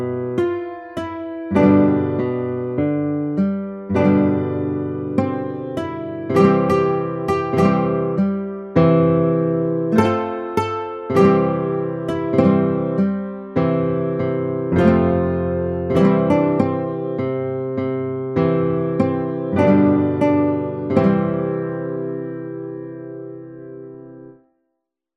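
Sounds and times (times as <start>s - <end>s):
guitar playing: 0.0s - 24.4s.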